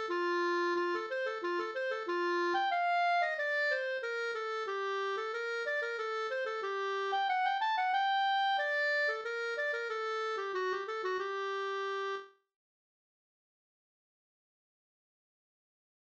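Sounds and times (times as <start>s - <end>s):
polska folk dance tune: 0.0s - 12.3s.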